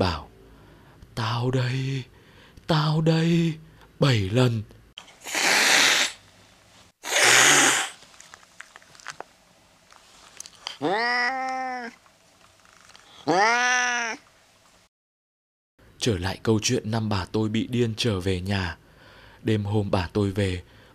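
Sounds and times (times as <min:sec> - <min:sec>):
speech: 0:01.4 - 0:04.8, 0:16.0 - 0:18.8, 0:19.4 - 0:20.9
harsh breathy bursts of noise: 0:05.1 - 0:06.2, 0:07.0 - 0:08.0
cat meowing: 0:10.8 - 0:12.0, 0:13.2 - 0:14.2.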